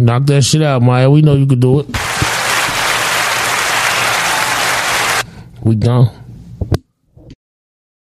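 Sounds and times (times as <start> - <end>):
speech: 0.0 - 2.1, 5.6 - 6.8
crowd applause: 2.0 - 5.2.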